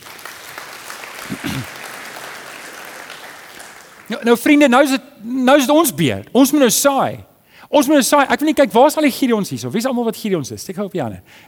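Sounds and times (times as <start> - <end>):
audience applause: 0.0 - 4.2
speech: 1.3 - 1.8, 4.1 - 11.4.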